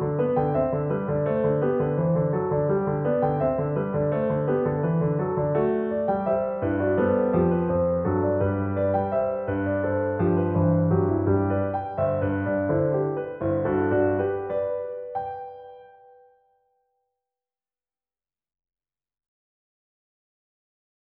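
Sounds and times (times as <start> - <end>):
piano sketches: 0.0 - 16.8.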